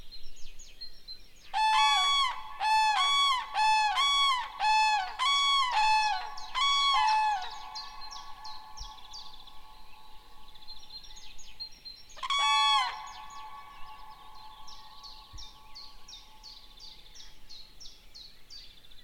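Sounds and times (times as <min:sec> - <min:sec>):
Grus grus calling: 0:01.6 - 0:10.3, 0:12.2 - 0:15.3.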